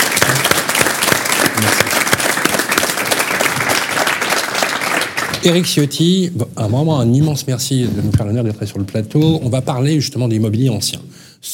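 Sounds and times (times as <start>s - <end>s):
audience applause: 0.0s - 5.7s
speech: 5.4s - 11.5s.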